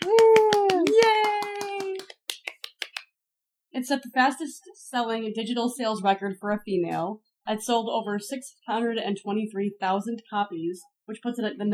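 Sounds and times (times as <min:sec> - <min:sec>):
small group clapping: 0:00.0 - 0:03.2
speech: 0:03.8 - 0:11.7.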